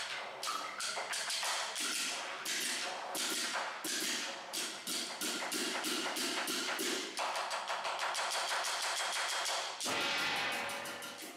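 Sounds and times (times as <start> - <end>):
spectacle percussion: 0.0 - 11.3.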